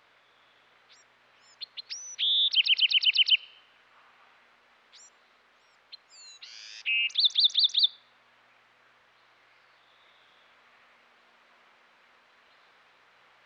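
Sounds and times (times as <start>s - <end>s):
Bewick's wren song: 0.2s - 3.7s, 4.9s - 8.0s.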